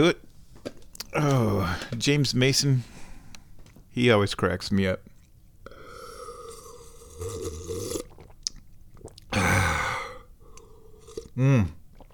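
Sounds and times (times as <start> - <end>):
speech: 0.0 - 0.2, 1.2 - 3.0, 4.0 - 5.1, 11.4 - 11.8
person sipping tea: 5.7 - 8.4, 9.0 - 12.1
soft mouth sounds: 7.3 - 12.1.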